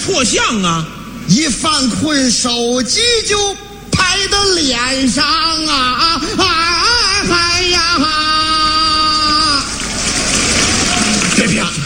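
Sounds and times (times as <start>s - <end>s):
speech: 0.0s - 9.0s
audience applause: 8.5s - 11.8s.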